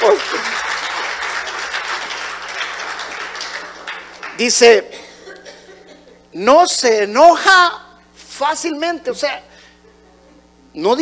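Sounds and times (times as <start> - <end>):
audience applause: 0.0 - 4.6
speech: 4.4 - 5.0, 6.4 - 7.8, 8.4 - 9.5, 10.8 - 11.0.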